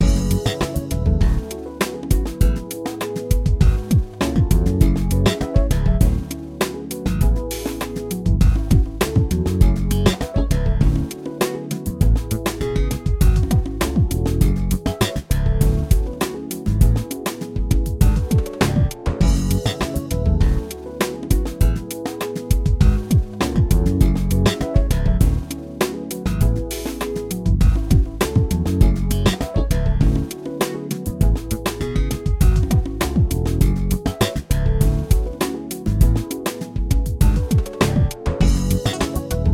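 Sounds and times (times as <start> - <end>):
main music: 0.0 - 39.5.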